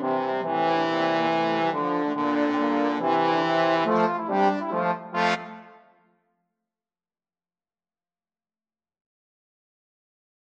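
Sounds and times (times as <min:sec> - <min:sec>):
trombone quartet: 0:00.0 - 0:05.8.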